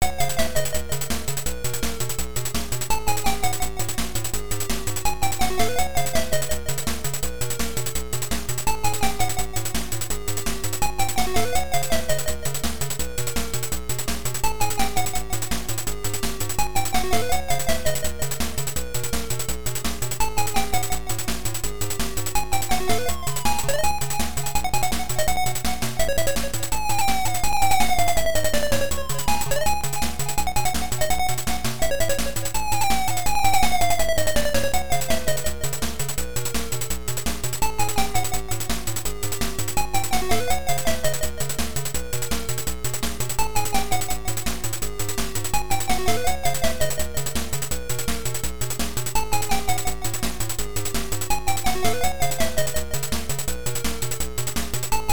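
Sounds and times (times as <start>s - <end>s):
background music: 0.0s - 55.1s.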